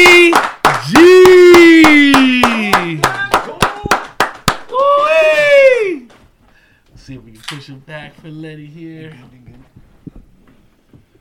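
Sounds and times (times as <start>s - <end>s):
rhythmic hand claps: 0.0s - 5.2s
loud wavering cheer: 0.2s - 3.9s, 4.7s - 6.1s
long falling vocal whoop: 0.9s - 3.0s, 4.7s - 6.1s.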